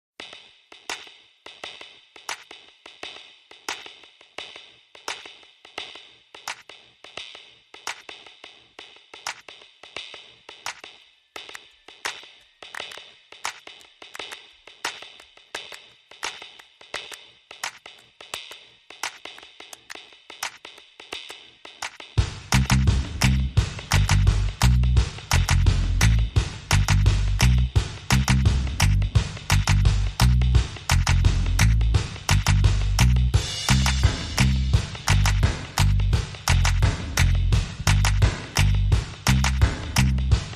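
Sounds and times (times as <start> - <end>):
drums: 0.2 - 40.5
bass: 22.2 - 40.5.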